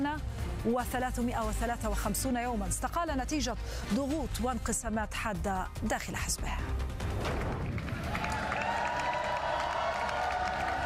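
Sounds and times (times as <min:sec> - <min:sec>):
speech: 0:00.0 - 0:07.4
crowd cheering election victory of Keir Starmer: 0:07.7 - 0:10.8.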